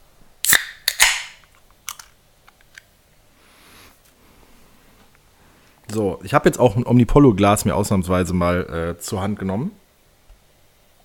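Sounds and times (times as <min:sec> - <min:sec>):
beer can cracking open: 0:00.4 - 0:02.9
speech: 0:05.9 - 0:09.8.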